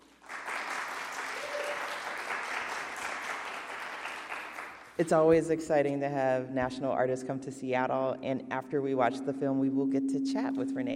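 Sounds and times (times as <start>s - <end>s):
audience applause: 0.0s - 5.0s
speech: 5.0s - 10.9s.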